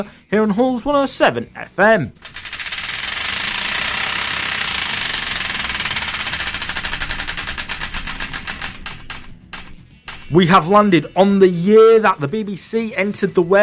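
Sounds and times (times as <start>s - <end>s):
speech: 0.0s - 2.3s, 10.3s - 13.6s
Wheel of Destiny prize wheel spinning and clicking: 2.2s - 11.2s.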